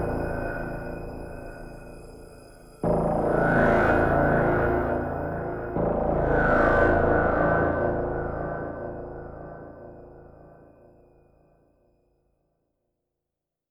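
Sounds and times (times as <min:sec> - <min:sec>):
synth pads: 0:00.0 - 0:10.6.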